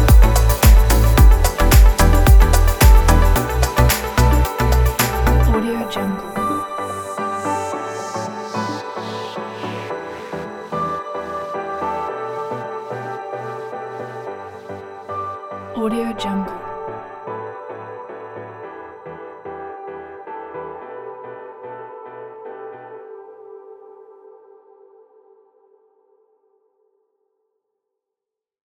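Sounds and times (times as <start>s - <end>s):
tropical summer house music: 0.0s - 21.0s.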